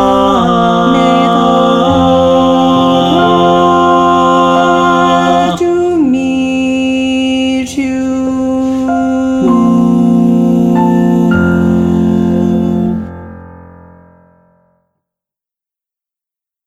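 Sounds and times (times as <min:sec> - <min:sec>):
soprano singing karaoke: 0:00.0 - 0:13.1.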